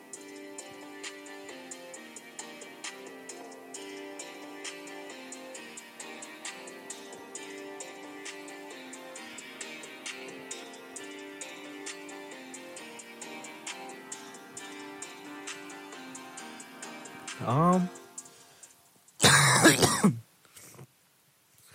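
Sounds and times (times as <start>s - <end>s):
quiet music: 0.0s - 20.1s
harsh cough from someone who is sick: 19.2s - 20.2s.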